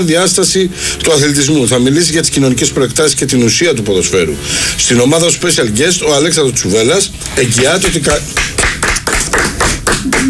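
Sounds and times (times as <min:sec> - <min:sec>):
speech: 0:00.0 - 0:08.5
one person clapping hands: 0:07.8 - 0:10.2.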